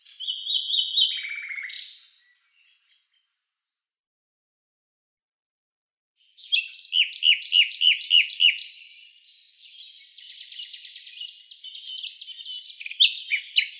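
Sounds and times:
Common nightingale singing sharp high notes and rapid rattling trills: 0:00.0 - 0:03.3, 0:06.3 - 0:13.7.

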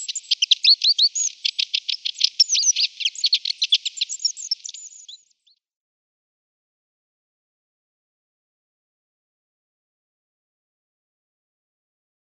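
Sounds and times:
Long-tailed tit song: 0:00.0 - 0:05.3.

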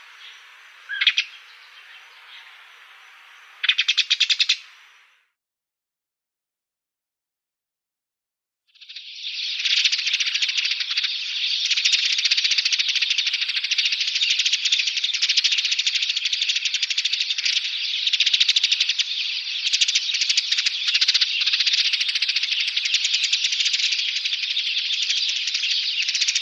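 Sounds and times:
Dead Sea sparrow chattering in a rattle of rapid high chirps: 0:00.0 - 0:01.5, 0:03.6 - 0:04.6, 0:09.3 - 0:26.4.

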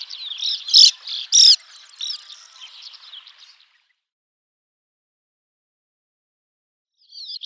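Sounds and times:
Sand Martin calls: 0:00.0 - 0:03.8.

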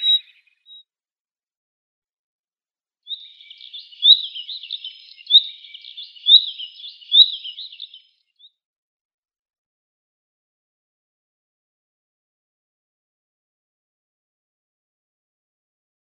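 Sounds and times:
Common Nightingale calls: 0:00.0 - 0:00.8, 0:03.1 - 0:08.2.

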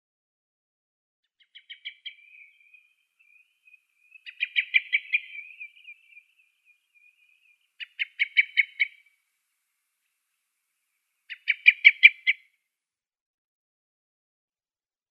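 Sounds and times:
Dusky thrush calls: 0:01.4 - 0:09.2, 0:11.3 - 0:12.4.

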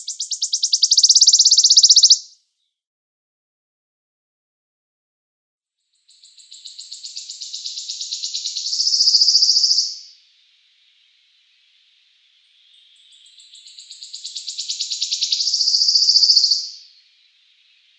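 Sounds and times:
wood warbler singing: 0:00.0 - 0:02.7, 0:06.0 - 0:10.1, 0:11.8 - 0:17.9.

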